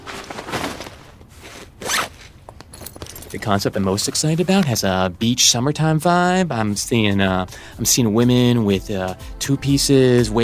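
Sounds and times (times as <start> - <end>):
backpack zipper pulled open: 0.1 - 2.4
speech: 3.3 - 10.4.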